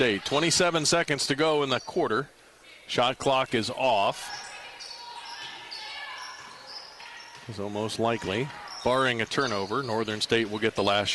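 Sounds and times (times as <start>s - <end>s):
speech: 0.0s - 4.4s, 7.5s - 11.1s
crowd noise at a Northern State game: 0.0s - 11.1s
basketball dribbled near the center circle: 5.3s - 10.8s.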